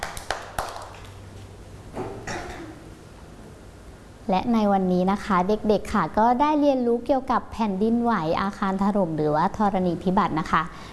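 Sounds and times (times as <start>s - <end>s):
children clapping: 0.0s - 1.2s
speech: 4.3s - 10.9s.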